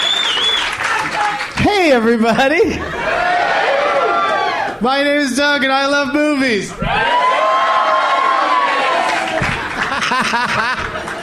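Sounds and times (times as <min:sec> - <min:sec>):
live comedy club audience in Atlanta cheering: 0:00.0 - 0:02.0, 0:02.8 - 0:04.8, 0:06.8 - 0:11.2
speech: 0:01.9 - 0:03.6, 0:04.8 - 0:07.6, 0:10.1 - 0:10.8
laughter: 0:09.4 - 0:11.2.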